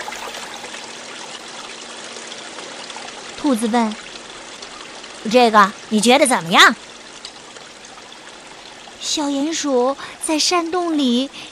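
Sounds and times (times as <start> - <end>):
waterfall splashing water: 0.0 - 1.9
speech: 3.4 - 4.0, 5.2 - 6.8, 9.2 - 11.5.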